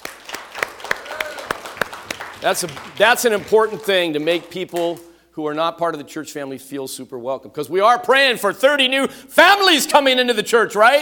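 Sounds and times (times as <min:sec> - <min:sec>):
church congregation clapping: 0:00.0 - 0:05.1
speech: 0:02.4 - 0:11.0.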